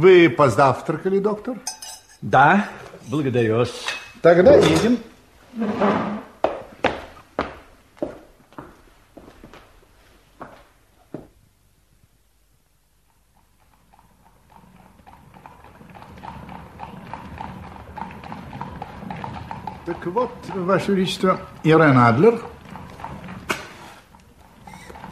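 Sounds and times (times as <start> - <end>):
speech: 0.0 - 6.3, 20.2 - 22.6
horse-drawn carriage hooves clip-clopping: 6.4 - 25.1
low rolling rumble: 14.6 - 25.1.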